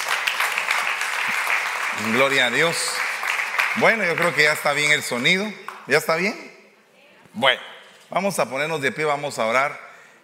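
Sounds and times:
audience applause: 0.0s - 5.8s
speech: 1.3s - 3.0s, 3.7s - 6.5s, 7.4s - 9.8s.

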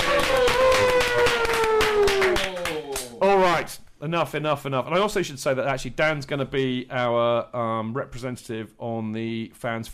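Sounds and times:
audience applause: 0.0s - 3.1s
speech: 4.0s - 9.9s.

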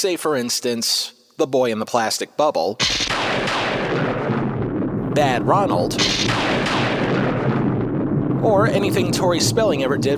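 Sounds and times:
speech: 0.0s - 4.0s, 5.2s - 6.7s, 8.4s - 10.1s
thunderclap rumbling: 2.9s - 10.1s.

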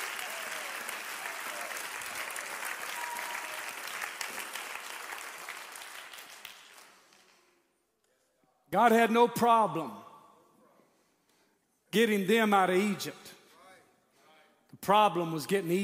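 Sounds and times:
audience crowd clapping hands: 0.0s - 7.6s
speech: 8.7s - 10.0s, 11.9s - 13.4s, 14.8s - 15.8s.

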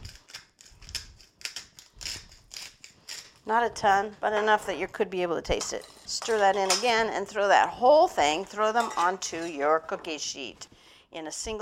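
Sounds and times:
hand-cranked salt grinder grinding sea salt: 0.0s - 3.4s
speech: 3.4s - 11.6s.

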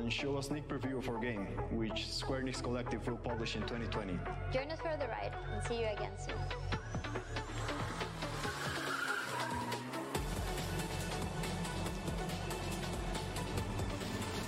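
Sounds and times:
speech: 0.0s - 6.7s
small race cars drifting with steady engine whine: 6.8s - 14.4s
tires squealing across the track: 6.8s - 14.4s.

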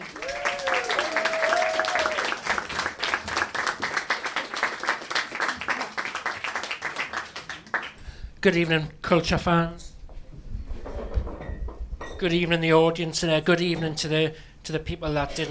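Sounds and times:
live stage show audience clapping: 0.0s - 8.1s
audience vocal whoop: 0.1s - 2.4s
speech: 8.4s - 9.8s, 12.2s - 15.5s.

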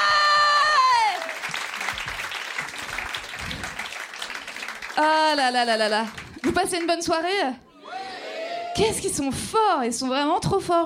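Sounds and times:
audience cheering: 0.0s - 4.9s, 7.8s - 9.0s
audience applause: 0.0s - 7.0s
speech: 5.0s - 7.6s, 8.8s - 10.8s.

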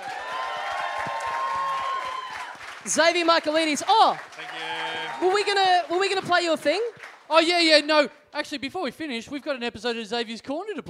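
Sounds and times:
crowd cheers: 0.0s - 7.0s
audience applause: 0.0s - 7.4s
speech: 2.8s - 10.8s.

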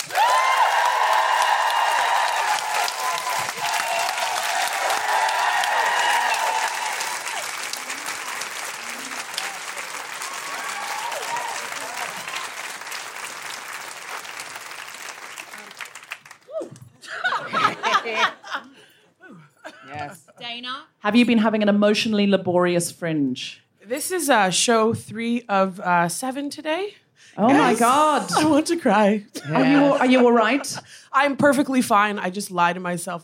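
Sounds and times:
audience applauding to welcome a comedian at a comedy show: 0.0s - 16.9s
laughter: 17.0s - 20.4s, 29.4s - 31.0s
speech: 21.1s - 33.2s.

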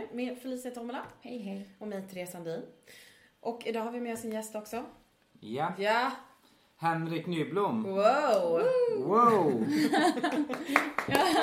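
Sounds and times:
speech: 0.1s - 11.4s
laughter: 9.1s - 11.4s
person clapping for himself: 10.2s - 11.4s.

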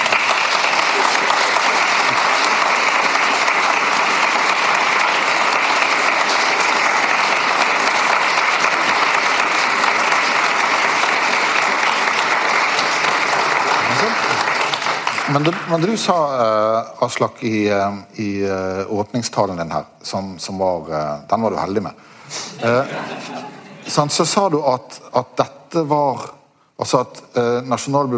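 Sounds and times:
audience applause: 0.0s - 16.4s
speech: 15.4s - 28.1s
laughter: 22.3s - 24.1s.

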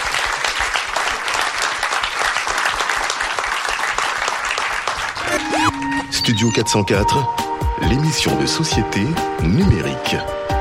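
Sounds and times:
audience applause: 0.0s - 6.2s
speech: 6.1s - 10.4s.

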